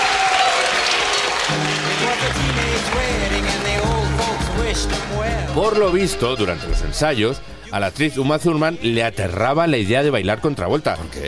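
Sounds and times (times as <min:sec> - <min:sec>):
audience applause: 0:00.0 - 0:05.3
speech: 0:04.8 - 0:11.2.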